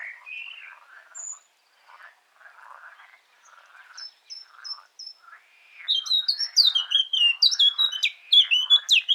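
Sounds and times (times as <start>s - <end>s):
Eurasian blackcap Sylvia atricapilla song: 5.9s - 9.1s.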